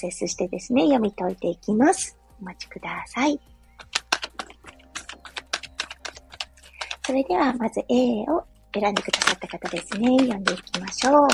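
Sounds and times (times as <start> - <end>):
speech: 0.0 - 3.9, 7.1 - 11.3
tarot reading cards tapping and clicking: 3.8 - 7.3, 8.8 - 11.3.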